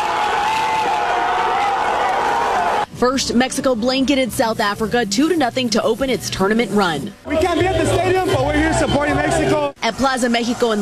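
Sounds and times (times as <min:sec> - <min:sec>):
crowd cheering at a World Cup watch party in Southern California: 0:00.0 - 0:02.9, 0:07.3 - 0:10.7
speech: 0:03.0 - 0:10.7.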